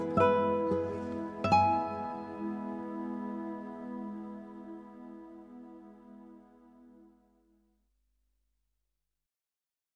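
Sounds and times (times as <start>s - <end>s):
acoustic instrumental praise music: 0.0s - 6.3s.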